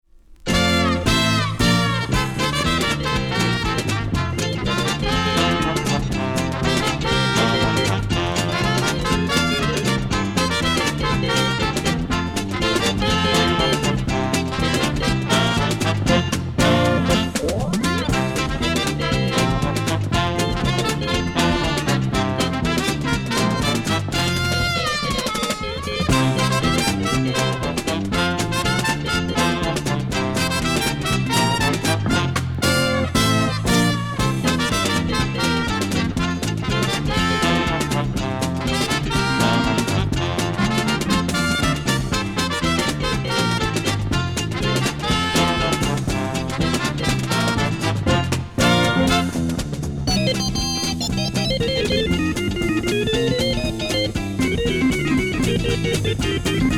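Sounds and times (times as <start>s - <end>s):
instrumental ensemble: 0.3s - 56.7s.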